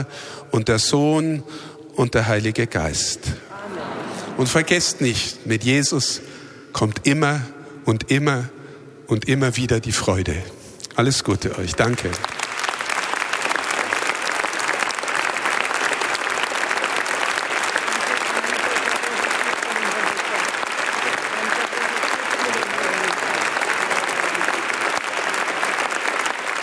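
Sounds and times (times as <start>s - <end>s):
speech: 0.0s - 3.5s, 4.4s - 12.4s
audience applause: 11.8s - 26.6s.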